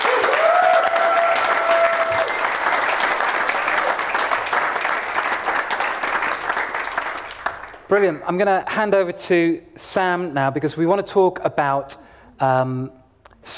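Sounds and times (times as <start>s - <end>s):
applause: 0.0s - 8.2s
speech: 7.9s - 13.5s.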